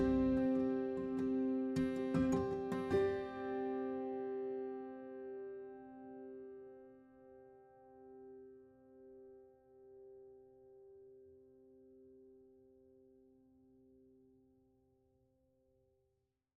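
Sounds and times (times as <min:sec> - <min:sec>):
harp: 0:00.0 - 0:04.1.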